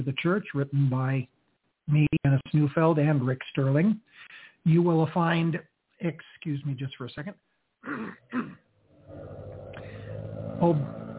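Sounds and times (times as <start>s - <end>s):
speech: 0.0s - 9.2s, 10.6s - 11.0s
small Japanese sports car engine starting: 9.0s - 11.1s.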